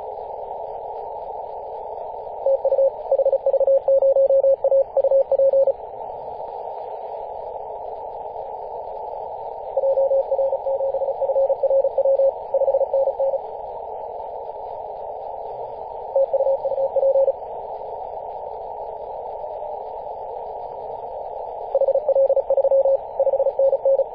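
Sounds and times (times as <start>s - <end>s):
CW morse code signal at 18.071MHz: 2.5s - 5.7s, 9.8s - 13.4s, 16.2s - 17.3s, 21.8s - 24.1s.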